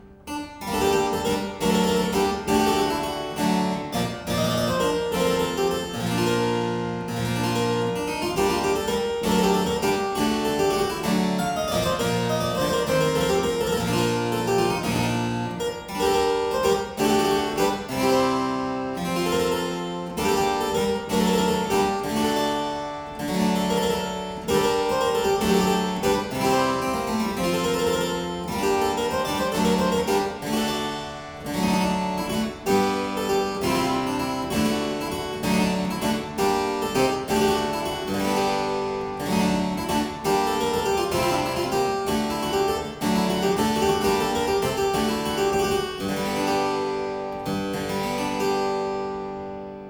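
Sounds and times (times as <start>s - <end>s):
harpsichord: 0.0s - 49.8s.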